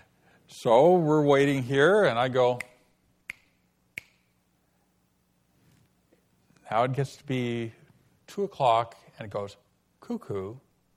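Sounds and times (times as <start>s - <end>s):
speech: 0.5s - 2.7s, 6.7s - 10.6s
finger snaps: 2.6s - 4.4s.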